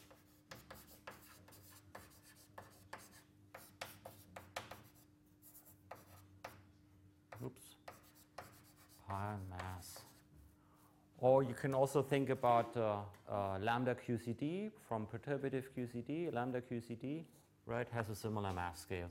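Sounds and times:
writing on a board during a physics lecture: 0.0 - 6.6, 7.3 - 10.3
speech: 7.4 - 7.8, 9.1 - 10.1, 11.2 - 19.0.

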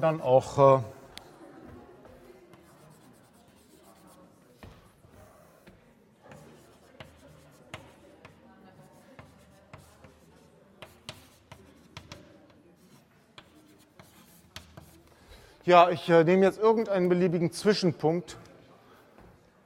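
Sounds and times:
speech: 0.0 - 1.0, 15.7 - 18.5
chalk or marker writing on a board: 1.6 - 15.1.

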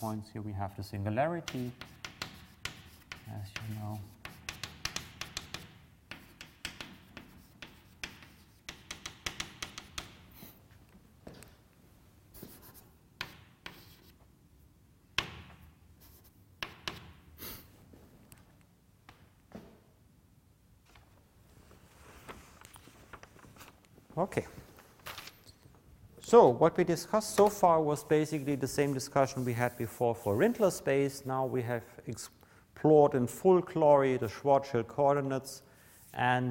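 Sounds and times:
speech: 0.0 - 2.0, 3.3 - 4.2, 24.2 - 24.6, 26.3 - 36.4
marker or chalk strokes on a board drawing a conformal diagram: 1.4 - 10.6, 12.4 - 14.2, 16.0 - 17.6.

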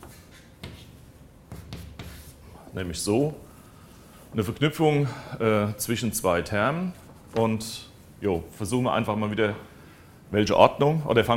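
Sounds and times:
writing on a board during a lecture: 0.0 - 2.5
speech: 2.8 - 3.5, 4.3 - 9.7, 10.3 - 11.3.

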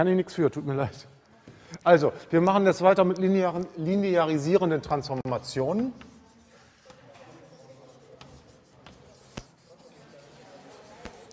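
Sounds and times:
speech: 0.0 - 1.2, 1.8 - 6.1
writing on a board during a mathematics lecture: 5.2 - 11.3.

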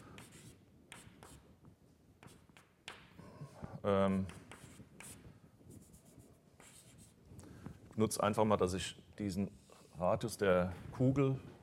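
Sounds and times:
writing on a board: 0.0 - 1.5, 2.2 - 7.2
speech: 3.8 - 4.4, 8.0 - 11.5.

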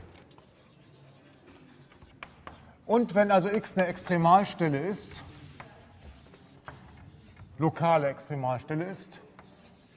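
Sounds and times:
handwriting on paper during a maths exercise: 0.3 - 4.2, 5.1 - 7.6, 9.4 - 9.9
speech: 2.9 - 5.3, 7.6 - 9.2.

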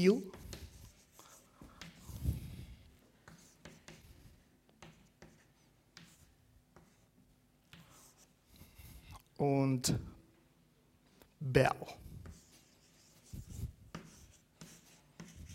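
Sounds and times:
speech: 0.0 - 0.4, 9.4 - 10.1, 11.4 - 12.0
handwriting scratching: 0.3 - 9.1, 12.1 - 15.5.

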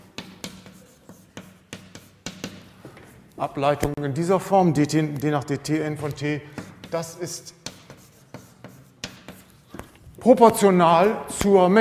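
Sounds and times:
handwriting strokes and taps during a mathematics lecture: 0.0 - 4.0, 6.0 - 10.6
speech: 3.4 - 7.6, 10.3 - 11.7.

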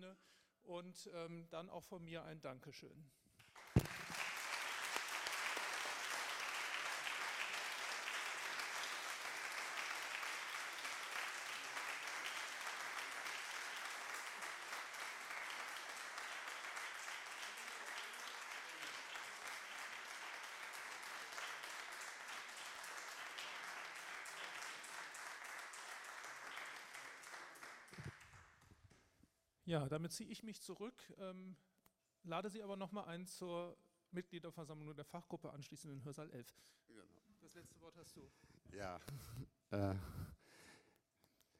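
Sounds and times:
speech: 0.0 - 3.2, 29.7 - 40.6
audience applause: 3.6 - 28.5.

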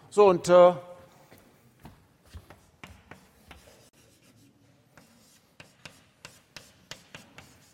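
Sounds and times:
writing on a board during a maths lesson on logarithms: 2.3 - 7.7.

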